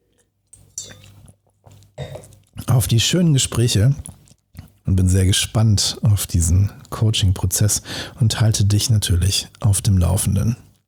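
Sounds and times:
person sipping a drink: 0.1 - 2.7, 3.9 - 4.9
speech: 2.8 - 4.1, 5.0 - 10.7.

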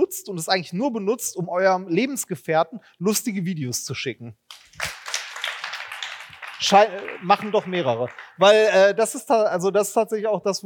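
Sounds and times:
speech: 0.1 - 4.9, 6.6 - 10.6
audience clapping hands: 4.5 - 9.1.

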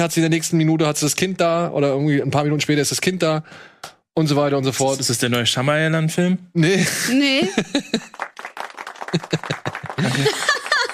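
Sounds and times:
speech: 0.0 - 8.4
laughter: 6.8 - 8.2, 9.0 - 10.9
applause: 8.0 - 10.9.

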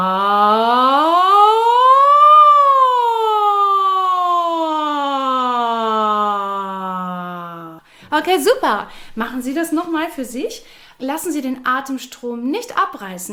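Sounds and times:
speech: 0.0 - 0.2, 8.2 - 13.3
voice imitating a siren: 0.0 - 7.8.

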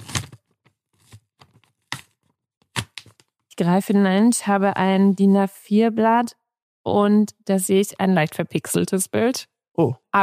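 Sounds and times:
large yellow paper envelope being torn open: 0.0 - 0.4, 2.8 - 3.2
speech: 3.6 - 10.2.

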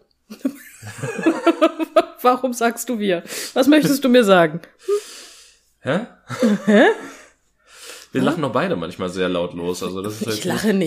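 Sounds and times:
laughter: 0.3 - 2.2, 6.3 - 7.2
speech: 0.8 - 5.1, 5.8 - 7.1, 8.1 - 10.8
person breathing noisily: 4.8 - 5.6, 7.0 - 8.2.

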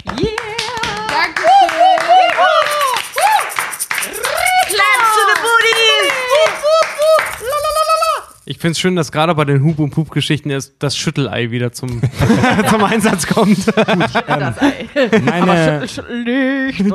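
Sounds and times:
applause: 0.0 - 7.9
laughter: 2.0 - 8.2, 11.9 - 16.1
speech: 8.6 - 16.9.

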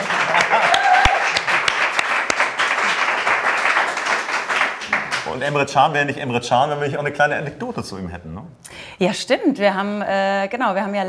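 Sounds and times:
laughter: 0.0 - 1.2
audience applause: 0.0 - 5.7
speech: 5.4 - 11.0.

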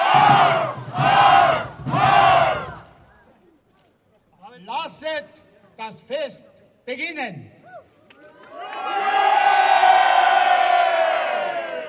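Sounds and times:
crowd at a medieval-style festival cheering to greet a prince: 0.0 - 3.0, 8.1 - 11.8
speech: 5.9 - 7.6.

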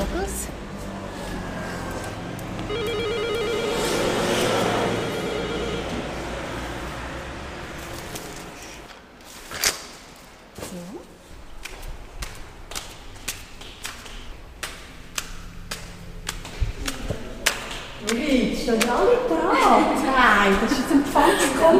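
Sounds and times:
steady hum: 0.0 - 21.7
doorbell ringing with buzzy pulsing electronic tone: 2.6 - 7.3.

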